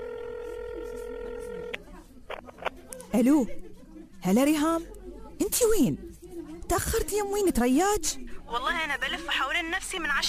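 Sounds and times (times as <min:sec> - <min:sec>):
steady electronic telephone tone: 0:00.0 - 0:01.8
speech: 0:03.1 - 0:03.6, 0:04.2 - 0:06.0, 0:06.7 - 0:10.2.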